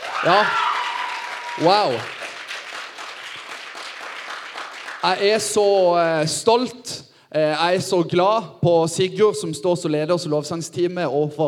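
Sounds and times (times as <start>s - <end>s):
audience applause: 0.0s - 5.2s
speech: 0.2s - 0.6s, 1.6s - 2.2s, 5.0s - 11.4s.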